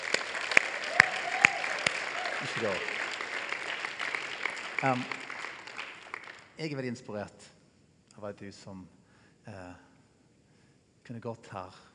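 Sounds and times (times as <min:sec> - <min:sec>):
scattered applause: 0:00.0 - 0:06.6
speech: 0:02.5 - 0:03.0, 0:04.8 - 0:05.2, 0:06.6 - 0:07.6, 0:08.2 - 0:09.9, 0:11.1 - 0:11.9.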